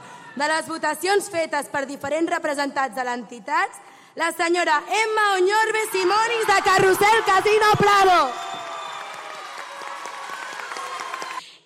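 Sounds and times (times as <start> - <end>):
speech: 0.4 - 8.5
audience applause: 6.1 - 11.6.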